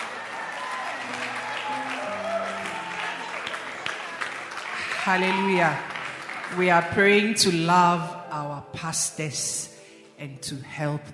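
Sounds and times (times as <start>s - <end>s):
people clapping: 0.0s - 7.7s
speech: 5.0s - 5.9s, 6.5s - 11.1s.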